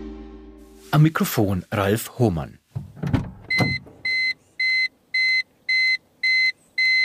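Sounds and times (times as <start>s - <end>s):
speech: 1.0s - 2.6s
car seatbelt warning chime: 3.5s - 7.0s.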